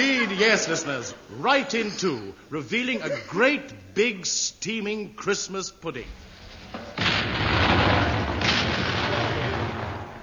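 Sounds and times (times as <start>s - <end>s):
laughter: 0.0s - 3.6s
speech: 0.0s - 7.0s
74th Medium Regiment RA artillery firing over open sights: 6.2s - 10.2s.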